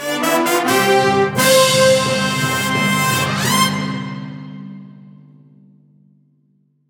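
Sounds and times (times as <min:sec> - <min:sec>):
level finish fanfare: 0:00.0 - 0:04.4.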